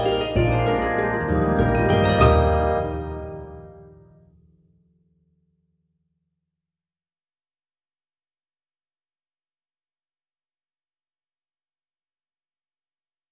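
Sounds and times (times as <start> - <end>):
warm-up waltz exam music: 0.0 - 4.1.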